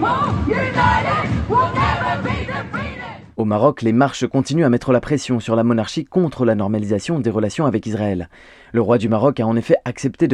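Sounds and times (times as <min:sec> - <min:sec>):
protest crowd chanting in Karachi: 0:00.0 - 0:03.3
speech: 0:03.4 - 0:10.3.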